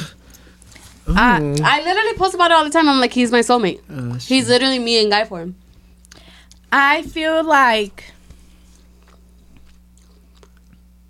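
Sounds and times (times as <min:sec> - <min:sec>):
low electrical hum: 0:00.0 - 0:11.0
speech: 0:01.0 - 0:05.6, 0:06.7 - 0:08.1
gum chewing: 0:08.7 - 0:11.0.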